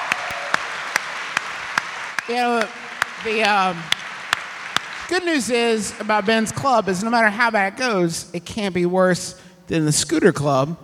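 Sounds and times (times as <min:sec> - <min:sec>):
audience applause: 0:00.0 - 0:07.2
speech: 0:02.3 - 0:04.0, 0:05.1 - 0:10.8.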